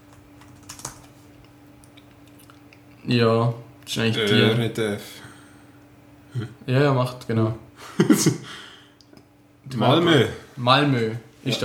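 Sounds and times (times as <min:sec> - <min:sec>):
low steady hum: 0:00.0 - 0:11.6
typing on a computer keyboard: 0:00.4 - 0:01.1
speech: 0:03.1 - 0:05.3, 0:06.3 - 0:08.6, 0:09.7 - 0:11.6.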